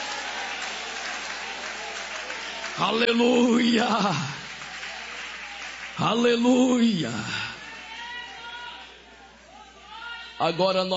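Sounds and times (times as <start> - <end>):
audience applause: 0.0 - 7.7
speech: 2.8 - 4.4, 6.0 - 7.4, 10.4 - 10.9.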